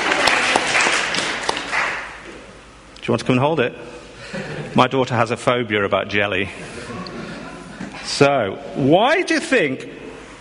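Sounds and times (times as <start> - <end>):
audience applause after a woman's demonstration at a talk: 0.0 - 2.2
speech: 3.1 - 7.0, 8.1 - 10.0.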